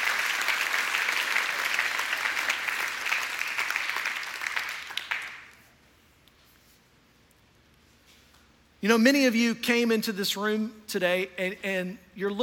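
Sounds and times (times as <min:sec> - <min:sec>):
audience clapping: 0:00.0 - 0:05.7
speech: 0:08.8 - 0:12.4.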